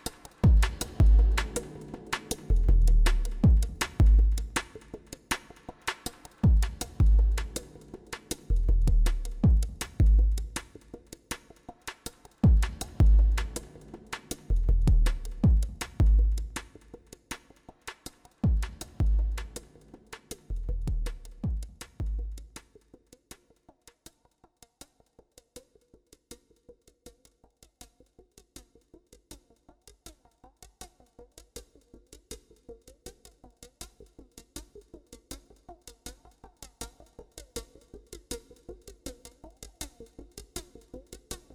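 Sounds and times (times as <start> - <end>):
drum train: 0.1 - 4.7, 5.4 - 10.6, 12.4 - 16.6, 18.4 - 19.6.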